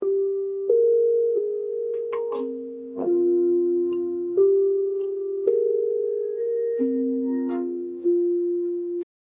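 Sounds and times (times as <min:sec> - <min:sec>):
soothing lullaby for a baby's sleep: 0:00.0 - 0:09.1.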